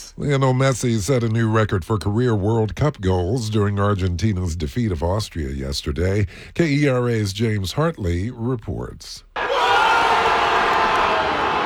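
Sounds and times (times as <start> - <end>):
speech: 0.2 - 9.3
Argentina football fans cheering after Messi's World Cup record goal: 9.4 - 11.6.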